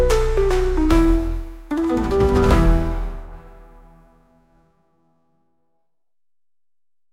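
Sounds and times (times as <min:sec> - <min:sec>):
beats: 0:00.1 - 0:03.8.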